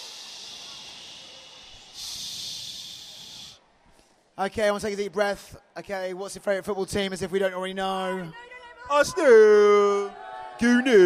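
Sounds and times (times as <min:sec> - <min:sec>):
young audience shushing each other at a seminar: 0:00.0 - 0:03.6
speech: 0:04.4 - 0:11.0.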